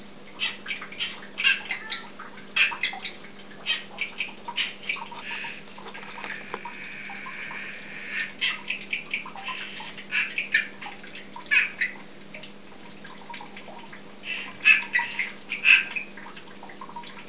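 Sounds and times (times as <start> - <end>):
Dendropsophus columbianus calling: 0.4 - 10.8, 14.2 - 16.1.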